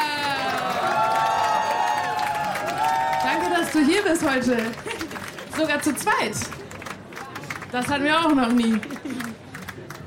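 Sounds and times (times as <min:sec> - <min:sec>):
audience cheering: 0:00.0 - 0:03.8
audience applause: 0:00.0 - 0:10.0
speech: 0:03.6 - 0:04.9, 0:05.6 - 0:06.6, 0:07.7 - 0:09.3.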